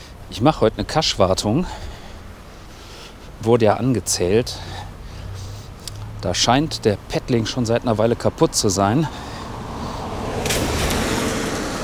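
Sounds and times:
steady road traffic rumbling: 0:00.0 - 0:11.8
speech: 0:00.3 - 0:01.9, 0:03.4 - 0:04.7, 0:06.2 - 0:09.3
vehicle passing: 0:04.0 - 0:11.8.

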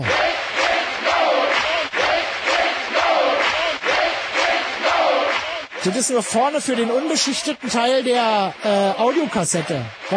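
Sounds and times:
applause: 0:00.0 - 0:10.1
speech: 0:05.8 - 0:10.1.

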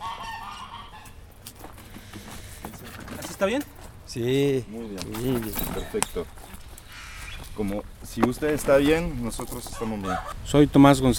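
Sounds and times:
hens in a garden: 0:00.0 - 0:11.1
speech: 0:03.4 - 0:06.4, 0:07.6 - 0:11.1.

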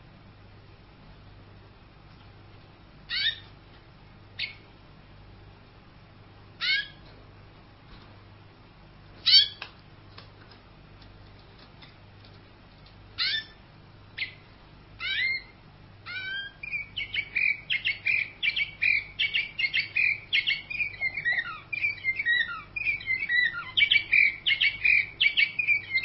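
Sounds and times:
canary song with high whistles, buzzy rattles and trills: 0:03.0 - 0:03.6, 0:04.3 - 0:04.7, 0:06.6 - 0:07.1, 0:09.2 - 0:09.6, 0:13.1 - 0:26.0.

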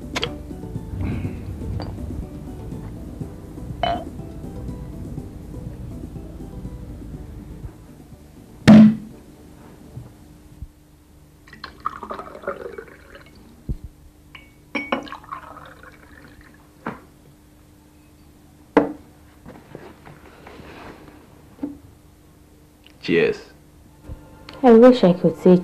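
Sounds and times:
low steady hum: 0:00.0 - 0:25.6
glass clinks and taps: 0:01.8 - 0:02.0, 0:03.8 - 0:04.1, 0:14.3 - 0:15.2
liquid splashing and gurgling into a glass: 0:11.5 - 0:13.5, 0:14.8 - 0:16.7
speech: 0:23.1 - 0:23.5, 0:24.6 - 0:25.6.

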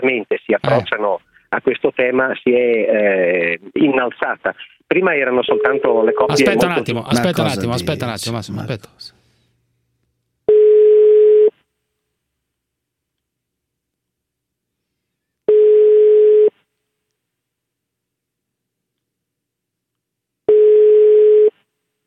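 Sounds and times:
speech: 0:00.0 - 0:09.1
telephone tone beeps while placing a call: 0:05.5 - 0:06.4, 0:10.5 - 0:11.5, 0:15.5 - 0:16.5, 0:20.5 - 0:21.5.

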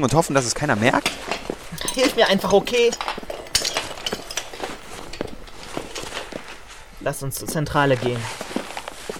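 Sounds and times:
speech: 0:00.0 - 0:03.2, 0:07.0 - 0:08.4
shards of broken glass clinking as they are gathered up: 0:01.3 - 0:06.2.

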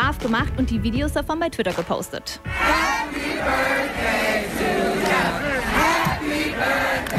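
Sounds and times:
speech: 0:00.2 - 0:05.4
festival crowd singing: 0:02.5 - 0:07.1.

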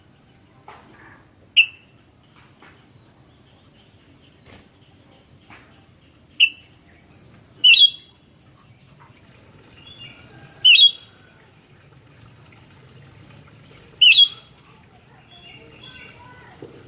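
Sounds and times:
Sooty-headed bulbul loud piercing chirps: 0:01.6 - 0:02.0, 0:06.3 - 0:06.9, 0:07.6 - 0:08.2, 0:09.8 - 0:11.3, 0:12.6 - 0:16.6.

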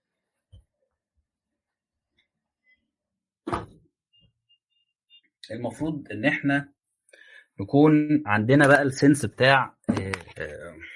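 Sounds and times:
door shutting thud: 0:03.5 - 0:03.8
speech: 0:05.5 - 0:06.8, 0:07.6 - 0:10.9.

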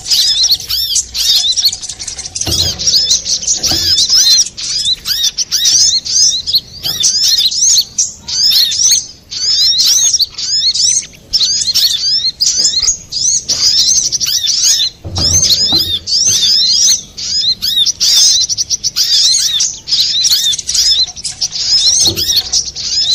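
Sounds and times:
little spiderhunter song: 0:00.0 - 0:23.1
faint low thuds: 0:02.4 - 0:04.4, 0:15.0 - 0:16.6.

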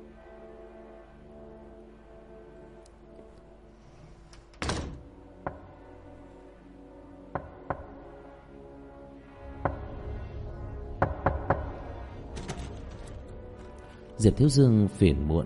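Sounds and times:
knocking on a door: 0:05.4 - 0:05.8, 0:07.3 - 0:08.1, 0:09.6 - 0:10.0, 0:11.0 - 0:11.9
speech: 0:14.2 - 0:15.4.

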